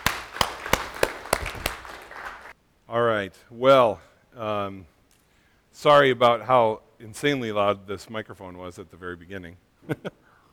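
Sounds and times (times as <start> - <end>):
audience clapping: 0.0 - 2.6
soft steady hiss: 0.0 - 10.5
speech: 2.9 - 4.9, 5.8 - 10.2.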